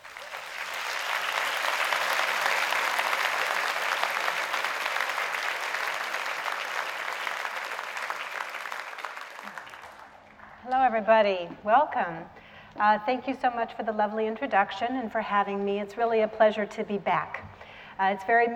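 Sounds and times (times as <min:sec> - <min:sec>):
audience applause welcoming a lecture speaker: 0:00.0 - 0:10.4
speech: 0:10.9 - 0:18.5.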